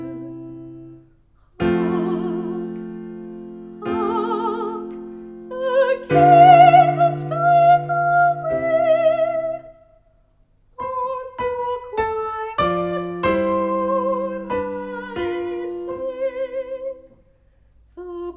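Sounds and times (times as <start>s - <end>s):
soprano singing solo: 1.6s - 3.1s, 3.7s - 9.8s, 10.8s - 17.1s.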